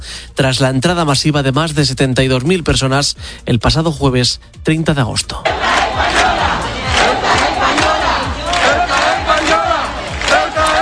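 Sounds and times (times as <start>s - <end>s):
speech: 0.4s - 6.2s
protest crowd chanting slogans: 5.4s - 10.8s.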